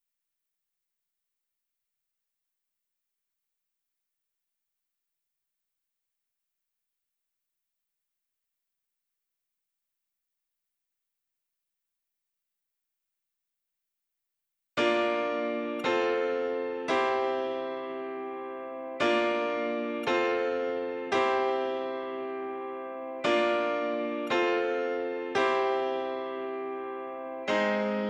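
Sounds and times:
piano: 0:14.8 - 0:28.0.

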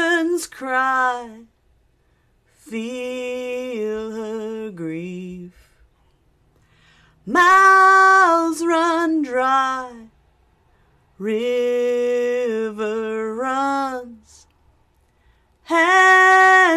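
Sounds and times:
woman singing a song cover: 0:00.0 - 0:01.5, 0:02.5 - 0:05.8, 0:07.2 - 0:10.2, 0:11.2 - 0:14.5, 0:15.6 - 0:16.7.

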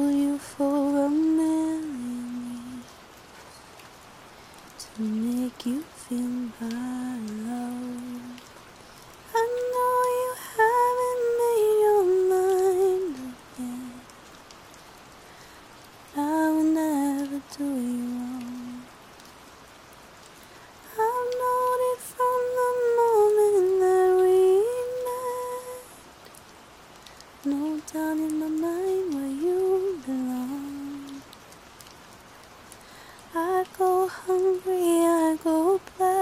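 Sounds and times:
soft singing: 0:00.0 - 0:03.7, 0:04.7 - 0:14.2, 0:16.1 - 0:19.0, 0:20.8 - 0:26.1, 0:27.1 - 0:31.4, 0:33.2 - 0:36.1
rain: 0:00.0 - 0:36.1.

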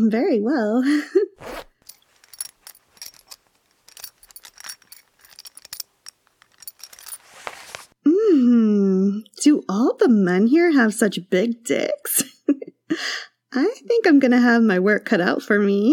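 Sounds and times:
speech: 0:00.0 - 0:01.7, 0:08.3 - 0:15.9
zipper being unzipped: 0:01.4 - 0:02.0
fabric rustling: 0:01.4 - 0:08.0.

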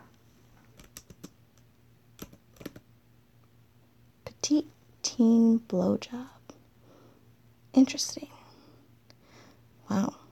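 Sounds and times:
search words typed on a computer keyboard: 0:00.8 - 0:01.4, 0:02.2 - 0:02.8
speech: 0:04.5 - 0:06.4, 0:07.8 - 0:08.3.

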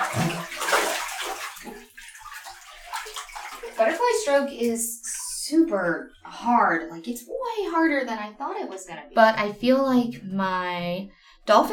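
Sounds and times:
water splashing while climbing out of a pool: 0:00.0 - 0:06.2
speech: 0:03.8 - 0:11.7.

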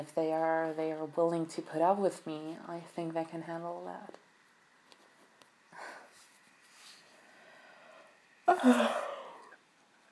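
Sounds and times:
speech: 0:00.0 - 0:04.2, 0:08.6 - 0:09.1
person yawning: 0:08.5 - 0:09.6.

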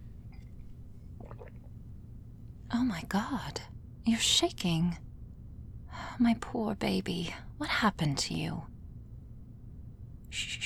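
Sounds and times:
person drinking water: 0:00.1 - 0:03.6
speech: 0:02.7 - 0:05.0, 0:05.9 - 0:08.7, 0:10.3 - 0:10.6.

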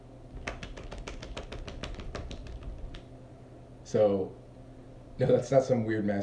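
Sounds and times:
one hand clapping against itself: 0:00.4 - 0:03.1
speech: 0:03.9 - 0:04.4, 0:05.2 - 0:06.2.

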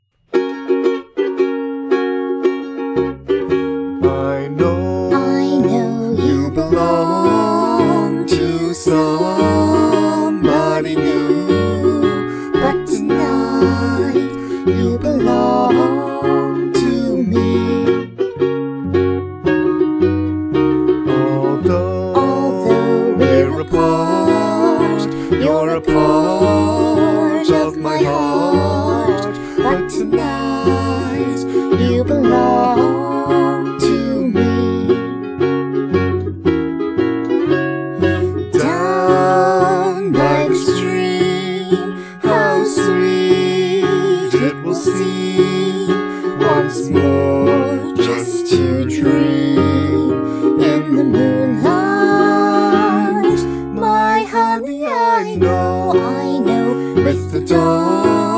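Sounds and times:
ukulele: 0:00.0 - 0:58.3
cello: 0:03.0 - 0:58.3
person singing: 0:03.4 - 0:18.4, 0:20.9 - 0:35.3, 0:37.9 - 0:58.3.

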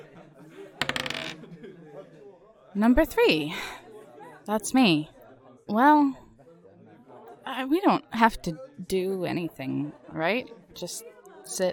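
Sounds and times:
dice rattling: 0:00.8 - 0:01.4
speech: 0:02.8 - 0:03.8, 0:04.5 - 0:05.1, 0:05.7 - 0:06.2, 0:07.5 - 0:11.7.

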